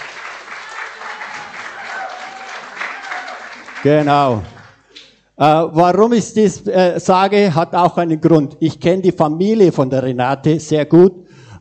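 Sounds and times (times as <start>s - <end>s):
audience clapping: 0.0s - 5.2s
speech: 3.8s - 4.6s, 5.4s - 11.5s.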